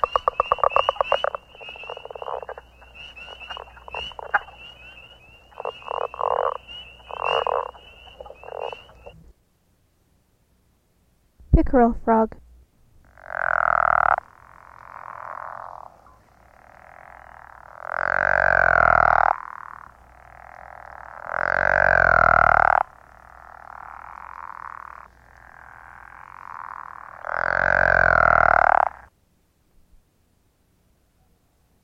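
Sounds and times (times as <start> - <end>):
frogs: 0.0 - 9.2, 13.0 - 29.1.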